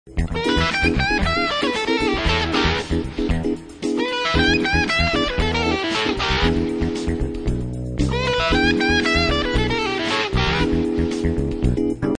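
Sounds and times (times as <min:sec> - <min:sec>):
blues music: 0:00.1 - 0:12.1.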